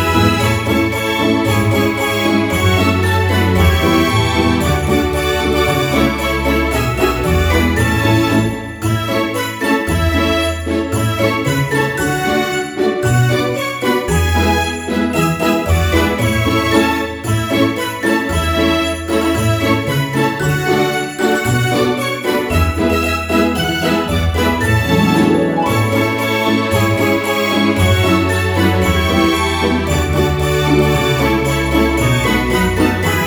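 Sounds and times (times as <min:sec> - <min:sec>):
christmas song: 0:00.0 - 0:33.2.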